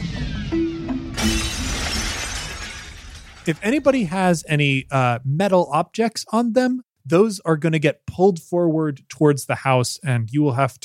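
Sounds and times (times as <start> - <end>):
falling glass shards: 1.2 - 4.0
window glass shattering: 1.2 - 4.0
speech: 3.4 - 10.8.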